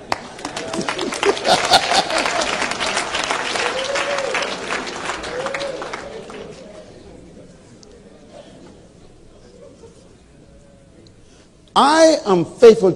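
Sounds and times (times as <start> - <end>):
audience clapping: 0.0 - 6.9
laughter: 0.5 - 3.9, 9.4 - 10.3
speech: 11.8 - 12.9.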